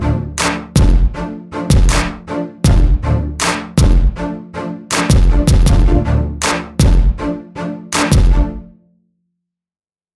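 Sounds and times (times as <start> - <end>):
groove music: 0.4 - 4.3, 4.9 - 7.3, 8.0 - 8.7.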